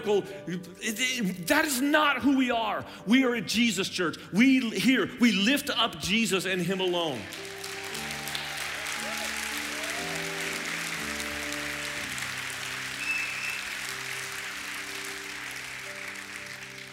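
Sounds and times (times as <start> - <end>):
speech: 0.0 - 7.5
audience applauding: 7.1 - 16.9.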